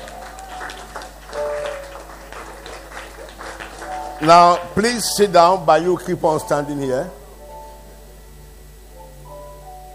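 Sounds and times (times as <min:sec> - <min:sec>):
clapping: 0:00.0 - 0:04.7
speech: 0:04.2 - 0:07.2.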